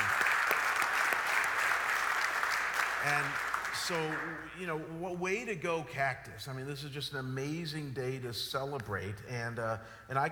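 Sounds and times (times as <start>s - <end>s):
crowd clapping: 0.0s - 4.6s
speech: 3.0s - 10.3s.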